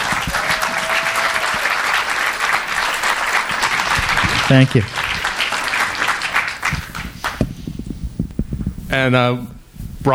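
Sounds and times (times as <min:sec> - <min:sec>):
audience applause: 0:00.0 - 0:07.4
speech: 0:04.5 - 0:05.0, 0:08.9 - 0:10.1.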